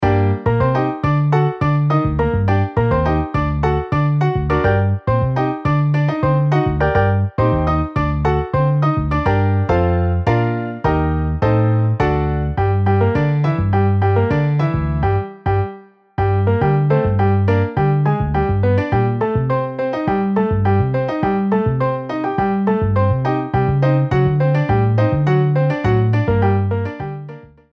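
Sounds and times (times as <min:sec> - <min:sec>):
MIDI piano and bass: 0:00.0 - 0:27.7.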